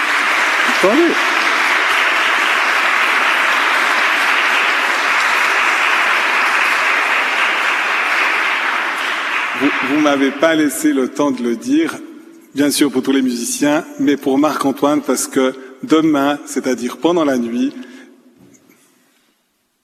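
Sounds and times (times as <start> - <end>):
applause: 0.0 - 11.9
speech: 0.8 - 1.3, 9.8 - 17.9.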